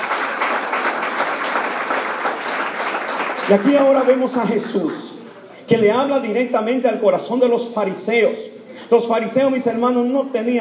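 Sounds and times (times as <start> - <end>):
audience applause: 0.0 - 5.0
speech: 3.5 - 5.1, 5.7 - 10.6.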